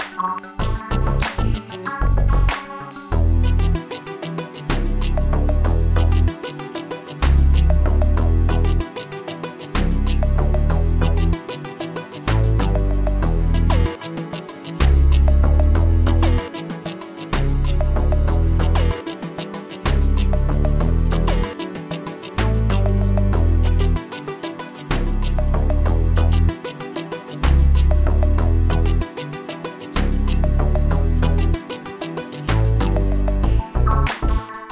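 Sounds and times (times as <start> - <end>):
hip hop music: 0.0 - 34.7.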